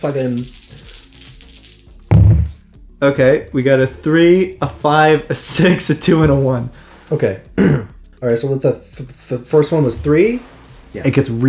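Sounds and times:
speech: 0:00.0 - 0:00.7, 0:03.0 - 0:11.4
dice rattling: 0:00.0 - 0:02.1.

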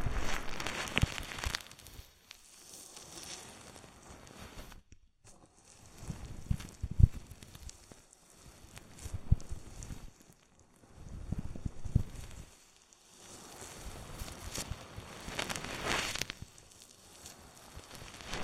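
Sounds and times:
oil and foam rubbed over the microphone in an ear massage: 0:00.0 - 0:18.4.

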